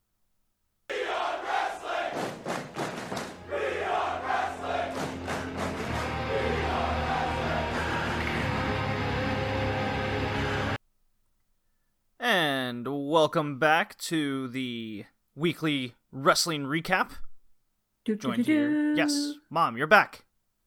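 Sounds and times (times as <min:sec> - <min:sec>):
live wrestling crowd chanting at AEW Full Gear: 0:00.9 - 0:10.8
speech: 0:12.3 - 0:17.2, 0:18.0 - 0:20.2.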